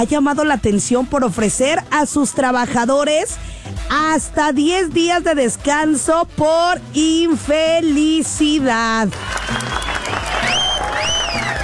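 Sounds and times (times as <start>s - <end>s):
speech: 0.0s - 9.8s
audience applause: 9.1s - 11.6s
high whistle tones: 9.6s - 11.6s.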